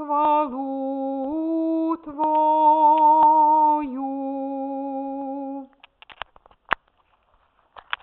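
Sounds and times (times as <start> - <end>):
altos singing: 0.0 - 5.8.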